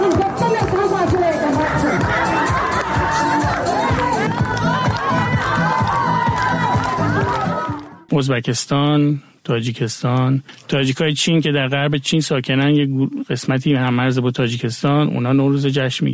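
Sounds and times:
women cheering at a Nowruz celebration in a prison: 0.0s - 8.0s
song: 0.0s - 8.1s
speech: 8.2s - 16.1s.

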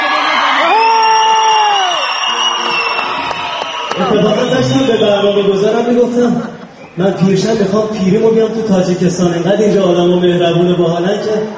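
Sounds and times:
audience whistling loudly: 0.6s - 7.3s
speech: 4.1s - 11.5s.

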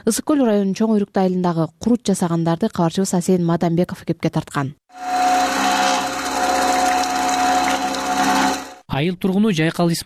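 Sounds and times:
speech: 0.0s - 5.2s, 9.0s - 10.0s
cream separator running on fresh cow's milk in a village home: 4.9s - 8.8s.

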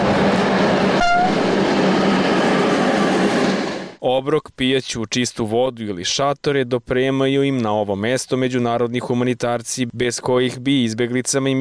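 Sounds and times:
high-pitched tonal squeal: 0.0s - 3.9s
train passing on railway line: 0.0s - 4.0s
speech: 4.2s - 11.5s.

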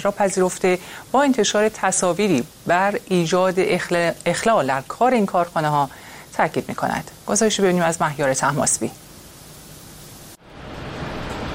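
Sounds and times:
speech: 0.0s - 9.0s
roaring flames in a factory: 9.0s - 11.5s.

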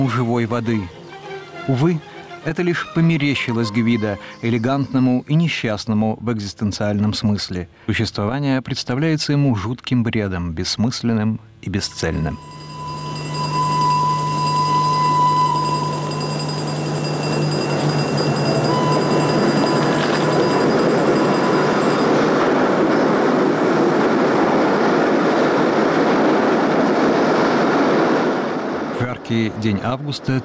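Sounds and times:
speech: 0.0s - 1.0s, 1.6s - 12.6s, 29.3s - 30.4s
locomotive tonal humming and whining: 0.0s - 5.7s, 11.8s - 28.9s
locomotive arriving at Chiusi railway station: 0.0s - 6.5s, 11.8s - 30.4s.

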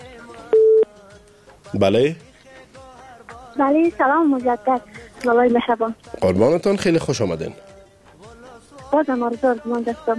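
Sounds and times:
telephone busy line tone during a call-in: 0.5s - 0.9s
speech: 1.7s - 2.3s, 3.6s - 7.6s, 8.9s - 10.1s.

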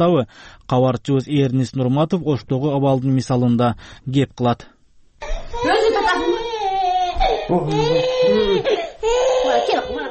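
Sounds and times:
speech: 0.0s - 6.2s, 7.5s - 10.0s
little girl crying in a large family's home in Osh: 5.2s - 10.0s.

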